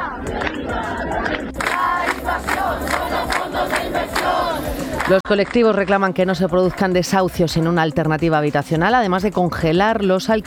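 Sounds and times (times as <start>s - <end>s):
constant din of the gathering: 0.0s - 5.2s
protesters chanting at a housing demonstration: 0.0s - 5.2s
speech: 5.1s - 10.4s.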